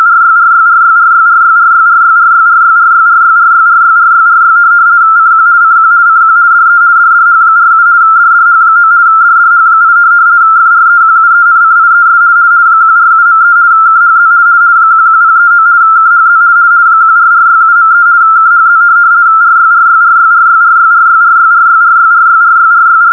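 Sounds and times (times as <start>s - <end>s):
RTTY weather service test tape signal received from longwave with 85Hz shift: 0.0s - 23.1s.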